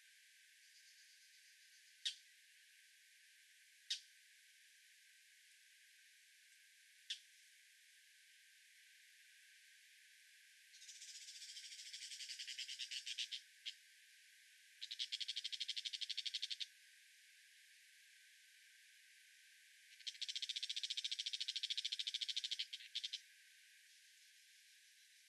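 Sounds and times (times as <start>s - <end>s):
brown shrike: 0.6s - 2.3s, 10.7s - 13.8s, 14.8s - 16.7s, 19.9s - 23.2s.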